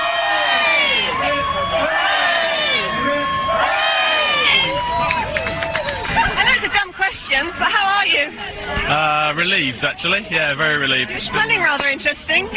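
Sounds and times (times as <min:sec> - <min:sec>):
crowd cheering and whooping: 0:00.0 - 0:08.9
speech: 0:08.9 - 0:12.5.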